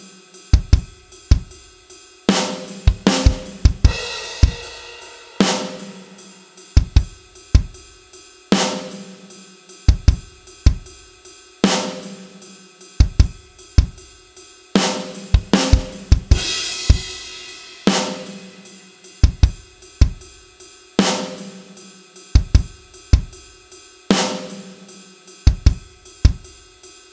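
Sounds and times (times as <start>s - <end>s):
different drums: 0.0s - 27.1s.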